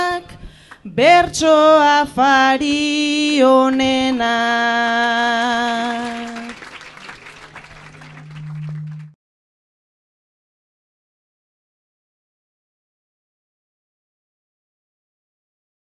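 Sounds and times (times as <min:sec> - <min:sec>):
person singing a bertso greeting verse: 0:00.0 - 0:06.6.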